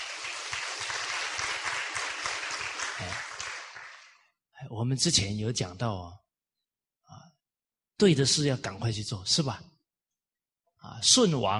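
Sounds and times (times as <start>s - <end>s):
audience applause: 0.0s - 4.2s
speech: 4.7s - 6.2s, 8.0s - 9.7s, 10.8s - 11.5s.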